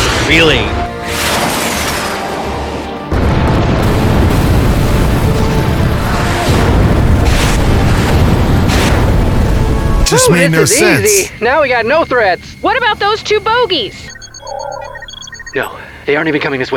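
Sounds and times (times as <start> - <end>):
Tomahawk missiles striking enemy SAM turrets in a video game: 0.0 - 11.0
speech: 0.3 - 0.8, 10.2 - 14.7, 15.6 - 16.7.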